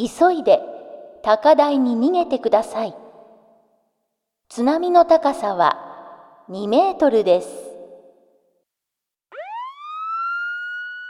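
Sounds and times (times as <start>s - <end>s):
speech: 0.0s - 3.0s, 4.5s - 5.9s, 6.5s - 7.6s
tsunami warning siren wailing: 9.3s - 11.0s.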